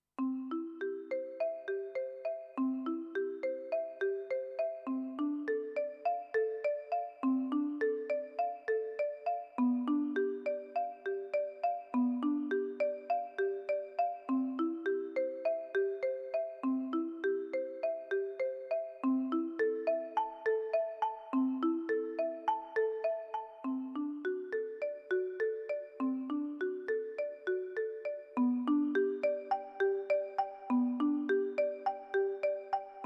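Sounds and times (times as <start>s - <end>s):
marimba: 0.2s - 33.0s.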